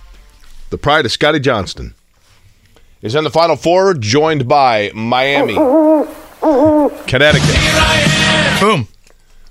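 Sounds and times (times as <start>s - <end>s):
speech: 0.7s - 2.0s, 3.0s - 9.0s
Aztec death whistle: 5.3s - 7.2s.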